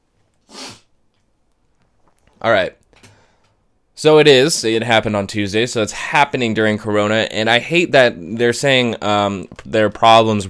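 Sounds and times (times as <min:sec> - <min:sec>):
person sniffling: 0:00.4 - 0:00.9
speech: 0:02.4 - 0:02.8, 0:04.0 - 0:10.4.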